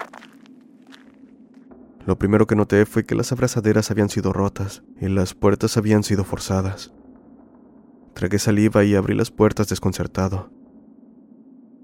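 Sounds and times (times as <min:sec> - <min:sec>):
footsteps crunching: 0:00.0 - 0:01.7
low hum: 0:00.0 - 0:11.8
speech: 0:02.1 - 0:07.0, 0:08.2 - 0:10.6.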